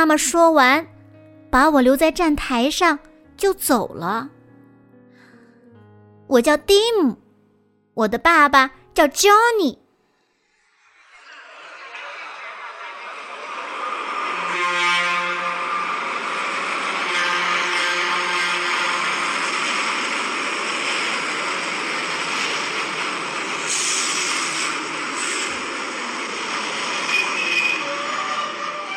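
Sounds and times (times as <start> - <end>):
speech: 0.0 - 4.4, 6.3 - 7.2, 8.0 - 9.8
train arriving and clanking to a stop: 10.8 - 28.9.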